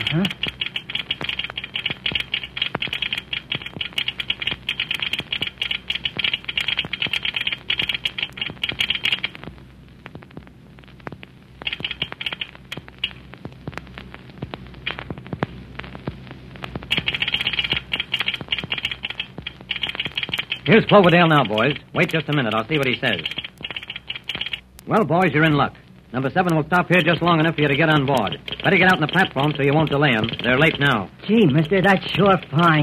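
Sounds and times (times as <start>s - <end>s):
telegraph key clicking: 0.0s - 9.3s, 11.6s - 12.8s, 16.9s - 24.6s
low steady hum: 0.0s - 32.8s
speech: 0.1s - 0.4s, 20.7s - 23.4s, 24.9s - 32.8s.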